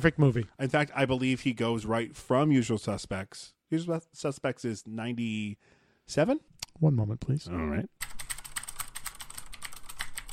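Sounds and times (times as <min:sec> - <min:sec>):
speech: 0:00.0 - 0:08.2
typing on a computer keyboard: 0:08.0 - 0:10.3.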